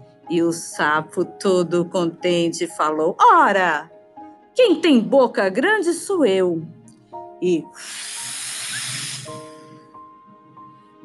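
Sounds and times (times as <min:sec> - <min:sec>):
speech: 0:00.3 - 0:04.0, 0:04.6 - 0:06.8, 0:07.4 - 0:08.2
big blow blowing out candles: 0:07.8 - 0:09.9.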